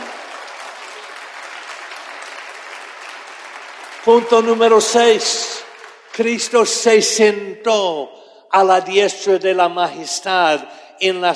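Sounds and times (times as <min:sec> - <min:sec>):
audience applause: 0:00.0 - 0:06.5
speech: 0:04.0 - 0:05.6, 0:06.2 - 0:11.3.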